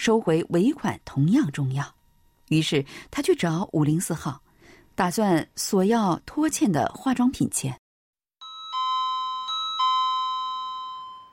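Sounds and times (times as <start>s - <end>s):
speech: 0.0s - 4.4s, 5.0s - 7.8s
doorbell chiming: 8.4s - 11.3s.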